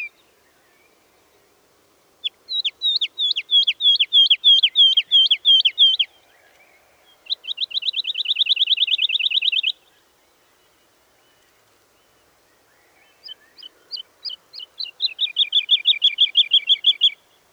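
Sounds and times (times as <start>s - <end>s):
woodlark singing: 2.2s - 6.6s, 7.3s - 9.8s, 13.1s - 17.5s.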